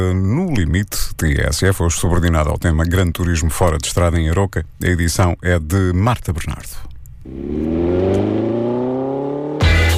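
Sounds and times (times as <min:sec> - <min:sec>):
speech: 0:00.0 - 0:07.9
off-road buggy engines accelerating hard through mud and dust in Arouca: 0:07.2 - 0:09.9.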